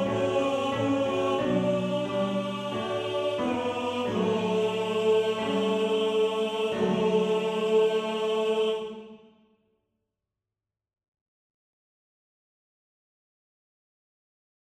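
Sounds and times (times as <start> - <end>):
male choir singing tenor part of a motet: 0.0 - 9.3.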